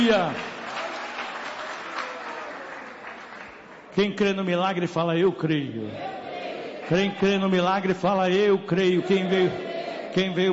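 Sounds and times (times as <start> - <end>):
speech: 0.0 - 0.5, 4.0 - 6.2, 6.9 - 10.5
church congregation clapping for Jesus during a worship service: 0.0 - 4.9, 6.8 - 8.1.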